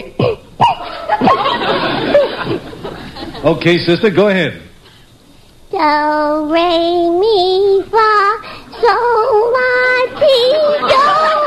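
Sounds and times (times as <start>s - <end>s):
woman clearing her throat: 0.0s - 0.8s
laughter: 0.8s - 3.6s, 10.1s - 11.4s
speech: 3.4s - 4.6s, 5.8s - 11.1s.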